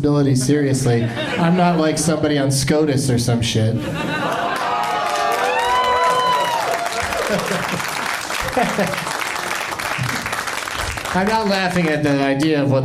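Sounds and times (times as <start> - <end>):
speech: 0.0 - 4.5, 7.3 - 7.9, 8.5 - 9.1, 11.1 - 12.8
laughter: 0.8 - 2.2, 3.8 - 10.3
audience applause: 4.1 - 12.4
cheering and whoops: 4.3 - 7.8.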